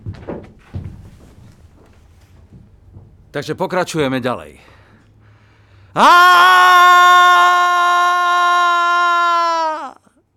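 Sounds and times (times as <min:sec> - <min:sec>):
speech: 0:03.3 - 0:04.8, 0:06.0 - 0:07.6
eerie scream played from a tape recorder: 0:06.0 - 0:10.1.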